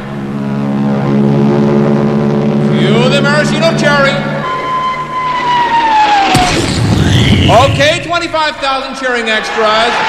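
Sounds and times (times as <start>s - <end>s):
aircraft engine drone flying overhead: 0.0s - 8.6s
speech: 7.6s - 10.0s.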